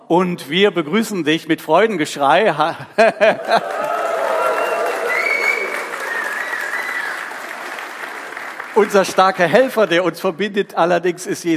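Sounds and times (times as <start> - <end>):
speech: 0.1 - 3.9, 8.8 - 11.5
laughter: 2.8 - 4.2
audience applause: 3.3 - 9.5.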